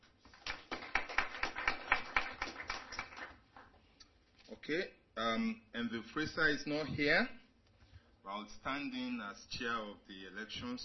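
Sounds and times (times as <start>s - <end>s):
audience applause: 0.4s - 3.5s
speech: 4.7s - 7.4s, 8.3s - 10.8s.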